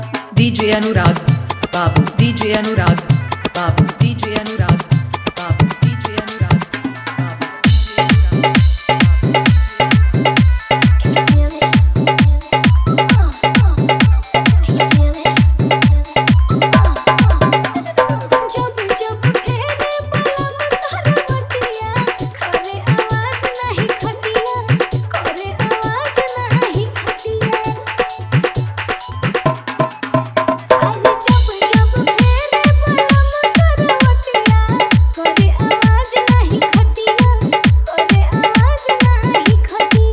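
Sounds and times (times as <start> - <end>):
hard dholak bass mix in Bhojpuri style: 0.0 - 40.1.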